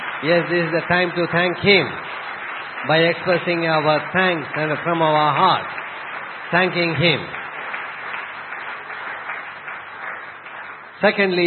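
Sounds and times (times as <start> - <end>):
audience clapping: 0.0 - 11.4
speech: 0.2 - 5.8, 6.5 - 7.4, 11.0 - 11.4.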